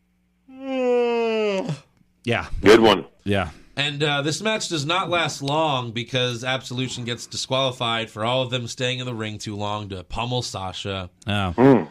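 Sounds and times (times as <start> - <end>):
yawn: 0.5 - 1.9
speech: 2.2 - 11.8.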